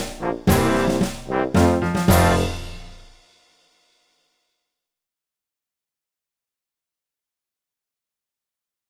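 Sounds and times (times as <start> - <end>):
clarinet: 0.0 - 3.0.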